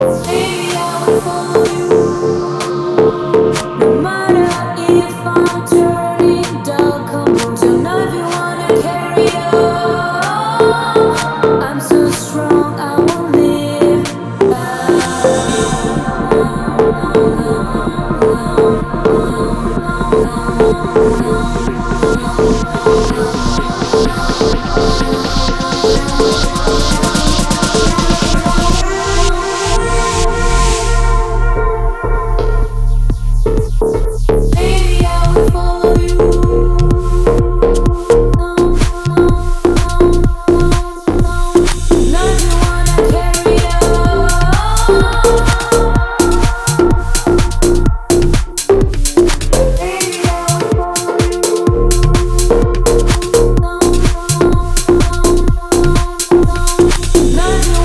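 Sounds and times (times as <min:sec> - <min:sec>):
deep house music: 0:00.0 - 0:57.8.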